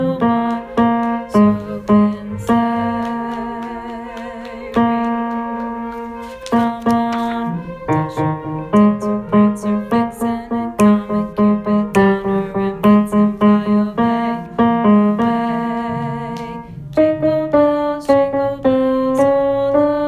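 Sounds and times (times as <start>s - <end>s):
tenor singing: 0.0s - 20.0s.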